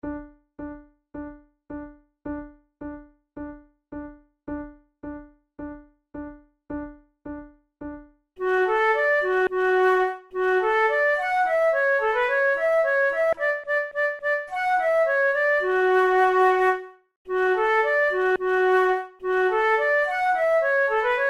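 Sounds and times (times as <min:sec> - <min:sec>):
flute duet: 0:08.4 - 0:21.2.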